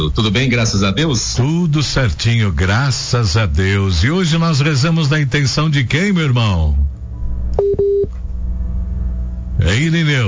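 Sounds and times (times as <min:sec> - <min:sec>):
low hum: 0:00.0 - 0:10.2
speech: 0:00.1 - 0:06.9, 0:09.6 - 0:10.2
telephone tones of a dropped phone call: 0:07.6 - 0:08.1.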